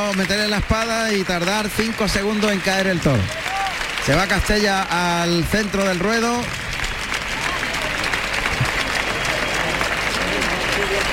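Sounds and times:
speech: 0:00.0 - 0:06.6
bullring crowd applauding: 0:00.0 - 0:11.1.

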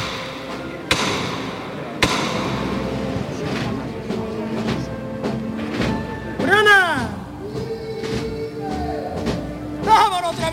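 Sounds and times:
foreman striking the float's hammer knocker: 0:00.0 - 0:02.9
crowd murmur: 0:00.0 - 0:10.5.

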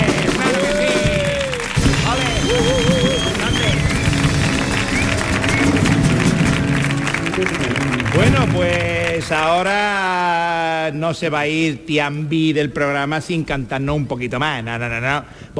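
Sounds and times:
thunderous ovation, audience applause: 0:00.0 - 0:10.3
speech: 0:10.9 - 0:15.5.

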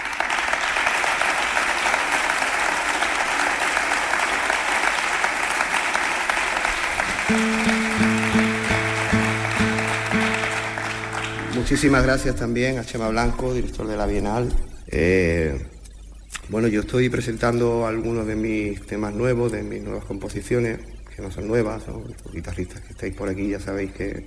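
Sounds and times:
audience applause: 0:00.0 - 0:12.2
speech: 0:07.3 - 0:07.6, 0:11.7 - 0:15.7, 0:16.5 - 0:24.2.

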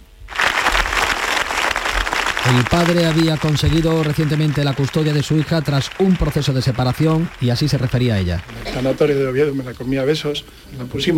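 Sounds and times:
crowd applauding in town square: 0:00.3 - 0:09.5
speech: 0:02.5 - 0:11.1.

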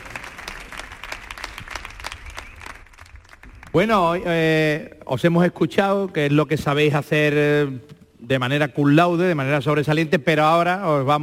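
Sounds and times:
audience applause: 0:00.0 - 0:03.9
speech: 0:03.7 - 0:11.2.

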